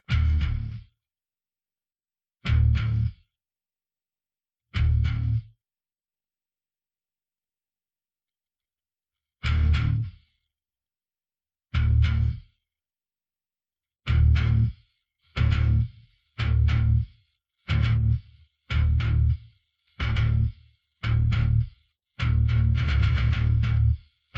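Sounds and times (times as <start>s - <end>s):
bass: 0.0s - 1.0s, 2.4s - 3.4s, 4.7s - 5.6s, 9.4s - 10.4s, 11.7s - 12.6s, 14.0s - 24.3s.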